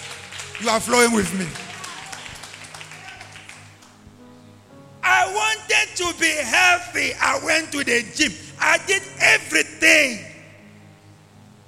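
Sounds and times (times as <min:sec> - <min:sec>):
audience clapping: 0:00.0 - 0:04.0
speech: 0:00.6 - 0:01.6, 0:05.9 - 0:10.3.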